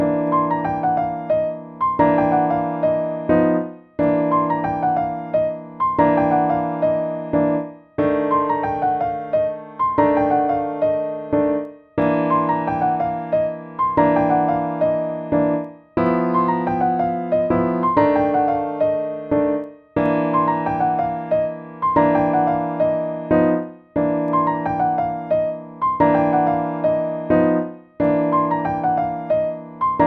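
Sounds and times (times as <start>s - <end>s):
left-hand jazz chords exercise: 0.0s - 30.0s.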